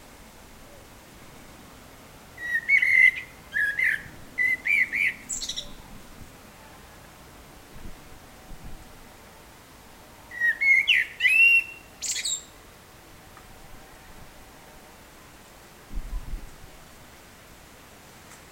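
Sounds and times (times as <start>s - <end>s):
blackbird singing: 2.4s - 5.8s, 10.3s - 12.5s.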